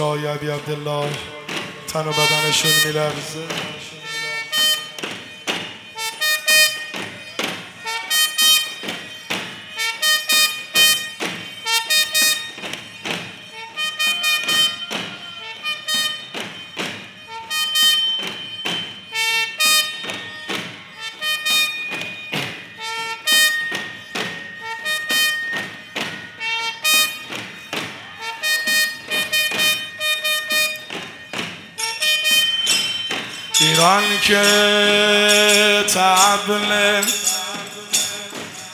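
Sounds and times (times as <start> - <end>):
speech: 0.0 - 1.4, 2.0 - 4.0
war horn blaring: 0.0 - 38.7.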